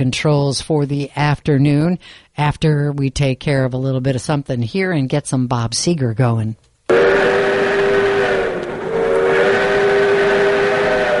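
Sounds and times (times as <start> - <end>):
speech: 0.0 - 7.3
steam train whistle: 6.9 - 11.1.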